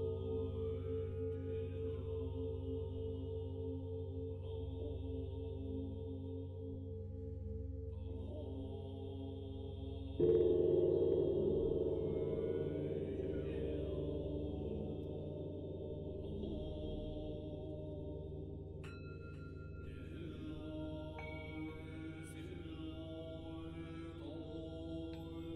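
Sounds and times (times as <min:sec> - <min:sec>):
Buddhist chanting voices: 0:00.0 - 0:25.5
singing bowl struck and ringing: 0:10.2 - 0:15.2.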